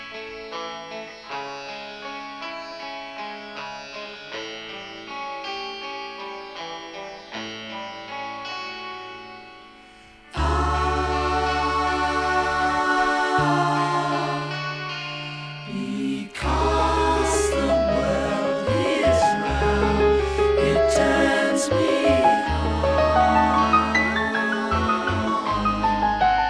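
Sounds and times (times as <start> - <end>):
impromptu music: 9.8 - 26.4.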